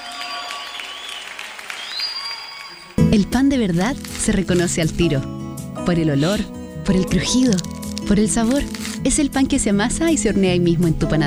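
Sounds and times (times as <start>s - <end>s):
audience applause: 0.0s - 3.2s
speech: 3.0s - 11.2s.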